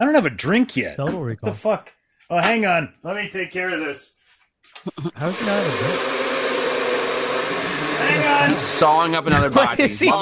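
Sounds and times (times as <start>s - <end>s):
speech: 0.0s - 6.2s, 8.0s - 10.2s
shop vacuum running: 5.2s - 9.3s
laughter: 7.9s - 10.2s.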